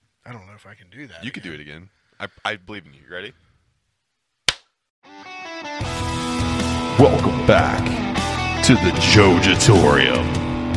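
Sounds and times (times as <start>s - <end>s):
speech: 0.3s - 3.5s, 7.0s - 10.4s
hard hand clap: 4.5s - 4.7s
tonal music: 6.6s - 10.6s.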